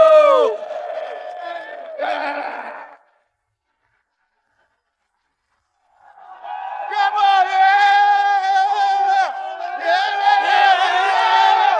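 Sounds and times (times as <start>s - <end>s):
audience cheering: 0.0s - 2.5s, 5.9s - 11.7s.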